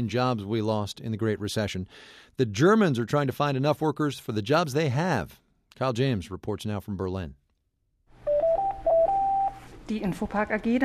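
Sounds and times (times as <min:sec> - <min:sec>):
speech: 0:00.0 - 0:07.4, 0:09.9 - 0:10.8
telephone electronic beeps: 0:08.2 - 0:09.7.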